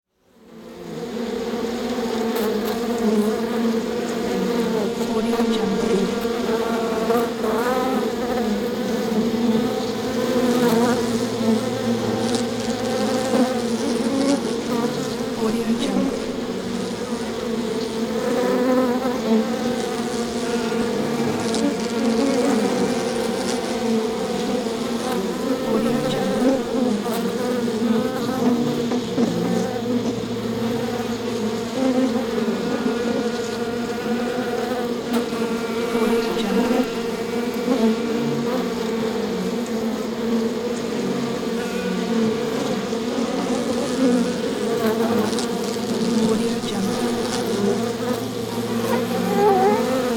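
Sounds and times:
angry bees swarming: 0.3 - 50.1.

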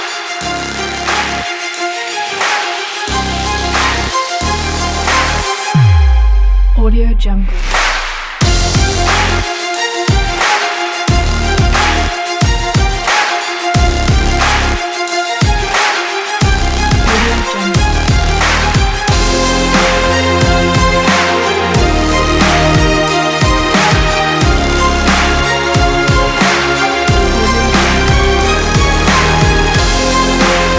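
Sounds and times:
epic dramatic sport action adventure music: 0.0 - 6.8, 7.4 - 30.7.

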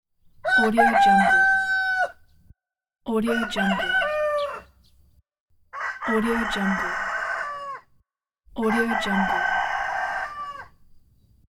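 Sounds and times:
rooster: 0.4 - 2.4, 3.1 - 4.9, 5.7 - 8.0, 8.6 - 10.9.

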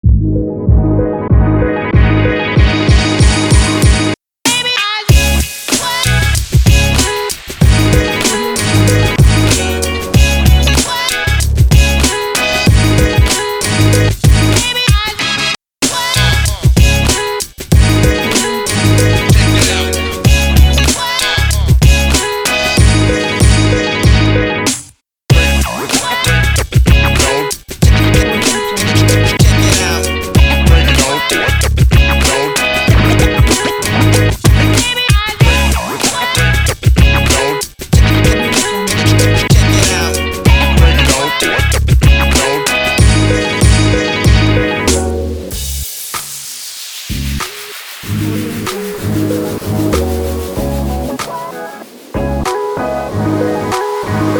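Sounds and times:
hip hop music: 0.0 - 24.7, 25.3 - 54.3.

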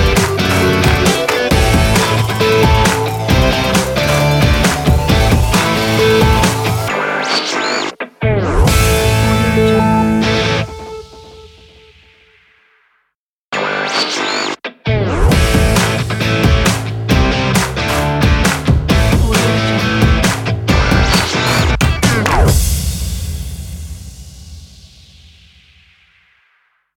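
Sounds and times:
upbeat sports rock news music: 0.0 - 11.5, 13.7 - 22.8.

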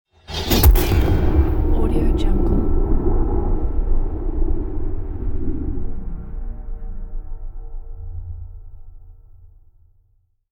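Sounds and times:
trailer impact: 0.2 - 8.6.

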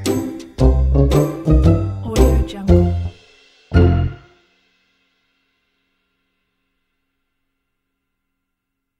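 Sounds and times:
comedy pizzicato strings: 0.0 - 4.3
comedy tuba: 0.1 - 4.3.

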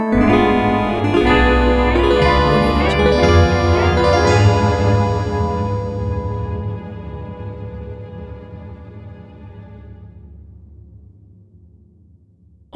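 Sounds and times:
creepy mystery ident: 0.1 - 10.1.

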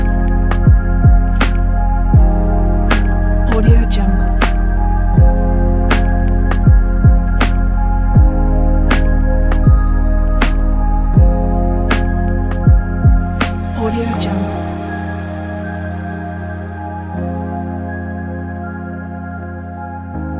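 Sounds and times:
dreamy electronic music: 0.0 - 20.3.

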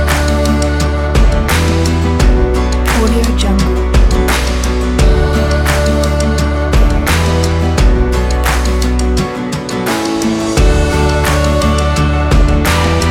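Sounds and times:
motivational upbeat acoustic indie folk music: 0.0 - 13.0.

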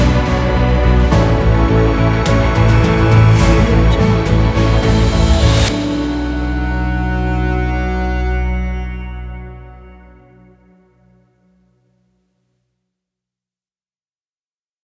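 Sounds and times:
epic piano music: 0.0 - 11.4.

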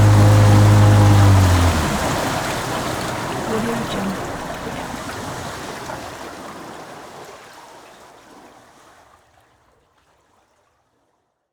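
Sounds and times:
pontoon boat driving: 0.0 - 7.3.

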